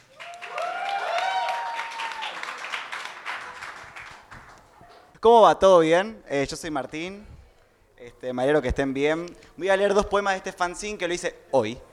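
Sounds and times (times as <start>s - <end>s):
people whooping and shouting: 0.0s - 2.6s
audience applause: 0.0s - 4.7s
speech: 5.2s - 7.4s, 8.0s - 11.9s.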